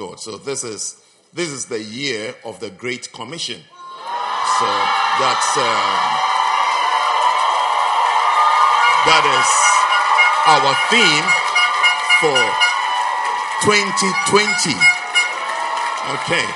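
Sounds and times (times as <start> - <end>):
speech: 0.1 - 3.8, 4.6 - 6.2, 9.1 - 9.8, 10.4 - 11.5, 12.2 - 12.6, 13.6 - 15.0, 16.0 - 16.5
audience applauding: 4.0 - 16.5.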